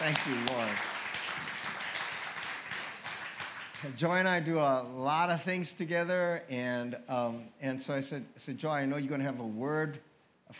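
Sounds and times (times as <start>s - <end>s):
crowd clapping: 0.0s - 4.3s
speech: 0.1s - 1.0s, 3.8s - 10.5s.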